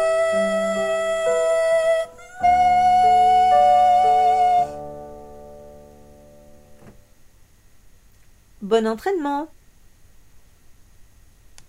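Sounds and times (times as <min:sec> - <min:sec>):
tenor singing: 0:00.0 - 0:05.0
soprano singing: 0:00.0 - 0:06.6.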